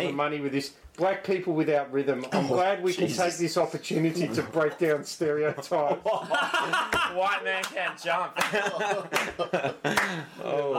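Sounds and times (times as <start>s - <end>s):
speech: 0.0s - 10.7s
laughter: 5.4s - 10.7s
hand claps: 6.9s - 7.8s, 8.4s - 10.2s.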